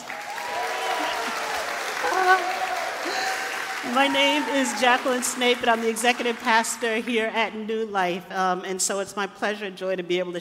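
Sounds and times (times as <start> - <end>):
cheers and whoops: 0.0 - 5.4
large crowd applauding: 0.0 - 7.1
speech: 2.3 - 3.2, 3.8 - 10.3.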